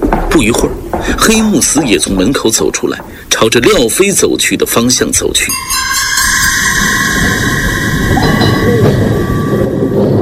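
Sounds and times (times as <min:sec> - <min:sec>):
old-fashioned tram moving slowly along a street: 0:00.0 - 0:10.2
speech: 0:00.4 - 0:06.9.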